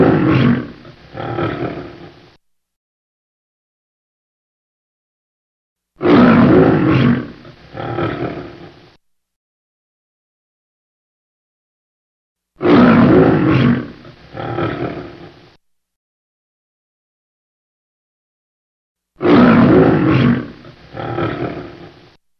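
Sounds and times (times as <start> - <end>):
lion roaring: 0.0 - 2.2, 6.0 - 8.9, 12.6 - 15.6, 19.2 - 22.2.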